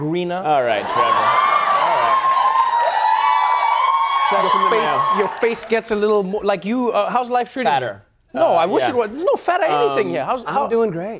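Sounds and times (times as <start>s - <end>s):
speech: 0.0s - 2.3s, 4.3s - 11.1s
studio audience cheering and whooping: 0.8s - 5.8s.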